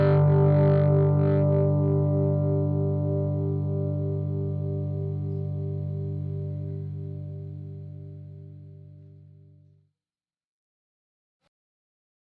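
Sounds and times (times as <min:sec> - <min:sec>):
1958 Gibson Les Paul Standard Reissue electric guitar with mid dirty tone: 0:00.0 - 0:09.0.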